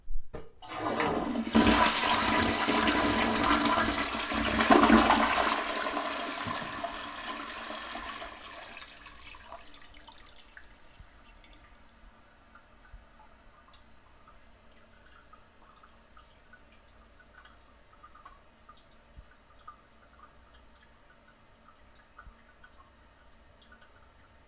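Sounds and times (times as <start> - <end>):
toilet sound: 0.4 - 11.6.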